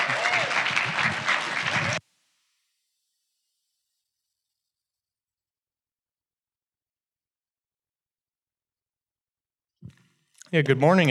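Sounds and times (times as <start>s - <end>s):
audience applause: 0.0s - 2.0s
speech: 10.5s - 11.0s.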